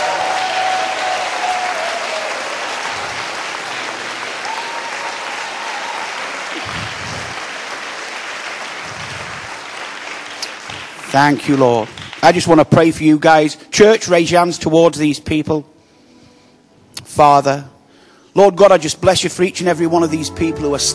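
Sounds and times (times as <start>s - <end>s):
audience applause: 0.0s - 12.6s
speech: 11.1s - 15.7s, 17.2s - 17.7s, 18.4s - 20.9s.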